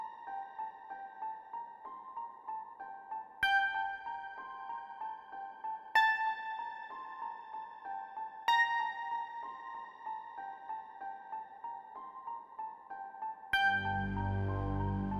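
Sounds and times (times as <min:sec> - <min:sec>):
ambient music: 0:00.0 - 0:15.1.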